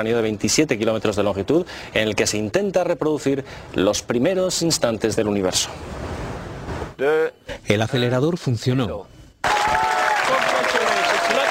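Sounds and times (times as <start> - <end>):
speech: 0.0 - 6.2, 7.0 - 9.8
crowd applause: 9.4 - 11.5
faint cheering: 9.4 - 11.5.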